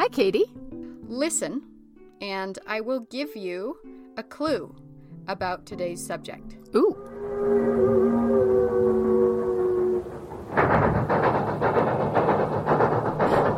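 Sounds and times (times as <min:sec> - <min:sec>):
speech: 0:00.0 - 0:08.1
train horn sounding a long chord: 0:07.0 - 0:10.6
passing train with wheels clacking on rails: 0:07.0 - 0:13.5.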